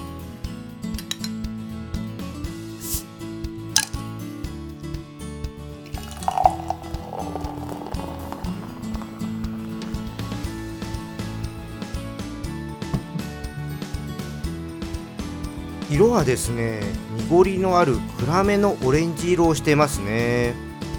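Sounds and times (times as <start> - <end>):
music: 0.0 - 20.9
beer being opened: 5.9 - 10.2
beer pouring into a glass: 5.9 - 11.6
speech: 16.0 - 20.6.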